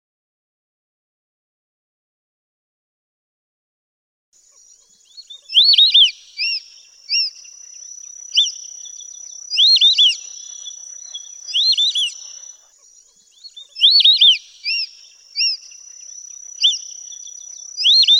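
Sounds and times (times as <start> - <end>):
white-faced whistling duck three-note whistled calls: 5.3 - 7.4, 8.3 - 12.7, 13.5 - 18.1.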